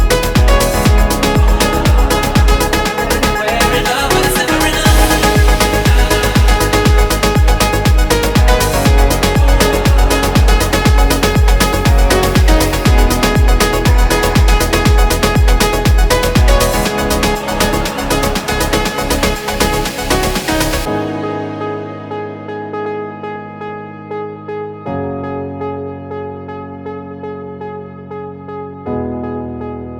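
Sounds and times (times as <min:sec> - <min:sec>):
afro house remix music: 0:00.0 - 0:21.5.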